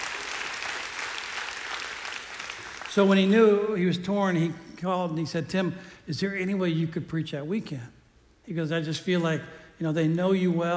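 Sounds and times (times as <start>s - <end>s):
audience clapping: 0.0s - 3.3s
speech: 3.0s - 10.7s.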